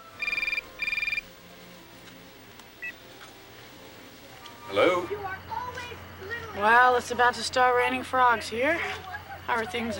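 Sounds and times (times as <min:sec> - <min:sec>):
telephone ringing with warbling trill: 0:00.0 - 0:01.2
faint hiss: 0:00.0 - 0:09.9
speech: 0:04.7 - 0:05.4, 0:06.6 - 0:09.9.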